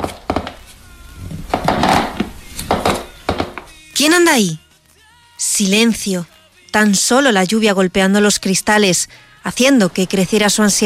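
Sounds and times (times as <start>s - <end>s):
wooden floorboards creaking under weight: 0.0s - 3.8s
speech: 4.0s - 4.6s, 5.4s - 10.8s.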